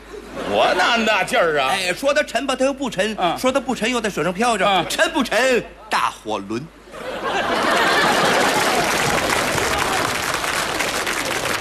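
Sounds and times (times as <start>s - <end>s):
laughter: 0.0s - 1.3s, 6.9s - 11.6s
speech: 0.5s - 7.4s
audience applause: 7.6s - 11.6s.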